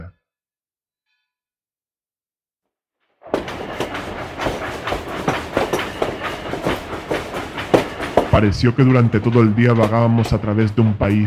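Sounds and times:
train clattering along rails: 3.2 - 11.2
speech: 8.4 - 11.2.

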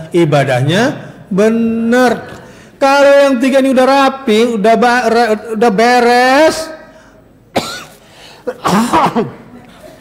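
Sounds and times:
speech: 0.1 - 6.8, 8.5 - 9.4
coughing: 7.5 - 9.9.

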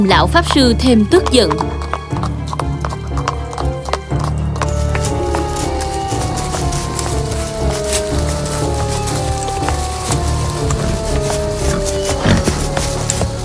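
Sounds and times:
speech: 0.0 - 2.3
horses galloping with rapid clip-clop of hooves: 0.0 - 13.4
soft patter like rain: 4.2 - 13.4
horse whinnying: 10.2 - 13.4.

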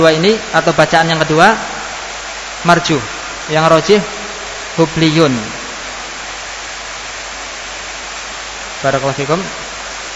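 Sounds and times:
speech: 0.0 - 1.7, 2.6 - 4.2, 4.8 - 5.6, 8.8 - 9.6
heavy rain: 0.0 - 10.1.

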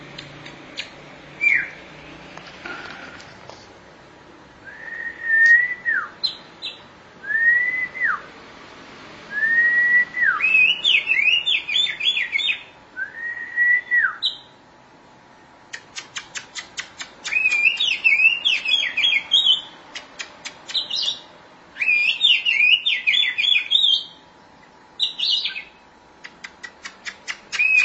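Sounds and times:
Oriental magpie-robin song: 0.8 - 1.8, 4.7 - 8.3, 9.3 - 14.6, 17.2 - 19.8, 20.7 - 24.2, 25.0 - 25.8, 27.5 - 27.8.

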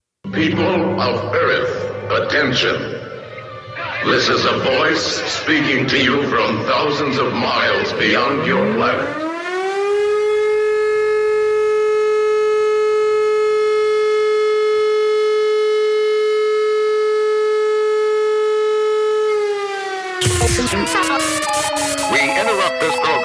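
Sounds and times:
speech: 0.4 - 3.1, 4.0 - 9.2
civil defense attack warning siren: 1.1 - 23.2
burst of harsh noise: 20.2 - 23.2.

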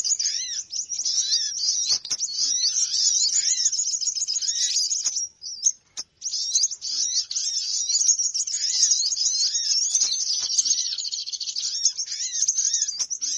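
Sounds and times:
bird flock calls: 0.0 - 13.3.

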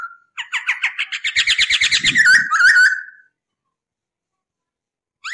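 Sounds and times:
masked laughingthrush song: 0.4 - 3.2.

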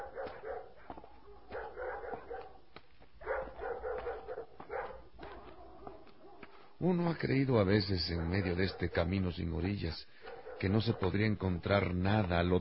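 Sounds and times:
dogs barking: 0.0 - 6.8, 8.1 - 9.4, 10.2 - 11.4
speech: 6.8 - 12.5.

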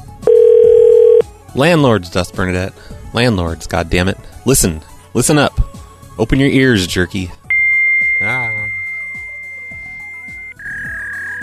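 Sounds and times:
fax machine tone on phone line: 0.3 - 1.2, 7.5 - 11.4
speech: 1.6 - 5.6, 6.2 - 7.4.

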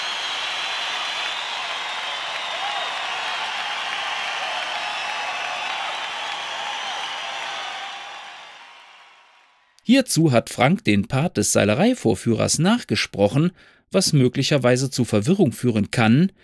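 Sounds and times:
applause for a voice actor being introduced: 0.0 - 9.8
speech: 9.9 - 16.4.

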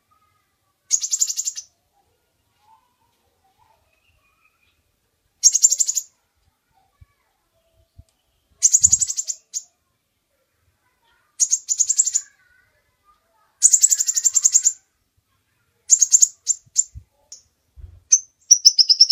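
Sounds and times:
bird giving buzzy chattering bursts: 0.9 - 1.7, 5.4 - 6.1, 8.6 - 9.7, 11.4 - 12.4, 13.6 - 14.8, 15.9 - 17.4, 18.1 - 19.1.

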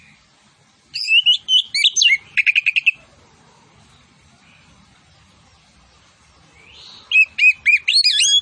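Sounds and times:
orange-headed thrush singing fast high twisting whistles and chattering notes: 1.0 - 3.0, 7.1 - 8.3.

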